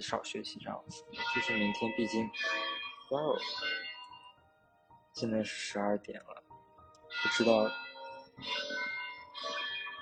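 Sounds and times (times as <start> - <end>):
speech: 0.0 - 3.9, 5.2 - 6.4, 7.1 - 7.8, 8.4 - 9.5
church bell ringing noon: 1.1 - 4.4, 7.1 - 10.0.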